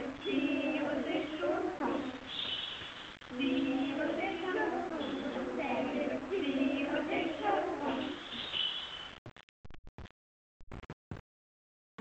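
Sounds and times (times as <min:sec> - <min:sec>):
pupils singing a song: 0:00.0 - 0:08.6.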